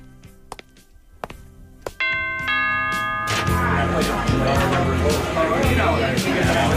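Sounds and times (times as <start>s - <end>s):
party music: 0.0s - 6.7s
two-note doorbell chime: 2.0s - 5.0s
party chattering voices: 3.1s - 6.7s.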